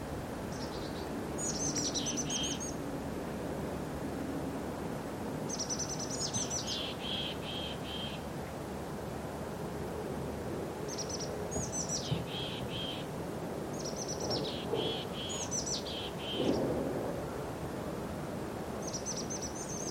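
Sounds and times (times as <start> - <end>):
light wind: 0.0 - 19.8
birds singing: 0.5 - 2.8, 5.5 - 8.2, 10.9 - 13.1, 13.7 - 16.8, 18.8 - 19.8.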